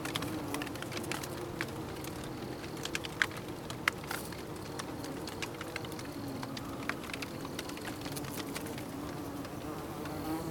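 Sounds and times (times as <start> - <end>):
bees buzzing in a steady low hum: 0.0 - 10.5.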